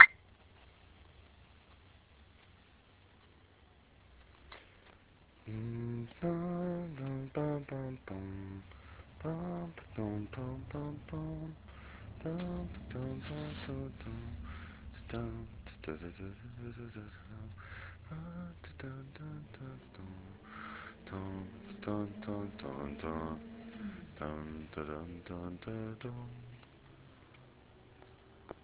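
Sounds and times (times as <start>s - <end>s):
washed up vocal only: 5.5s - 26.6s.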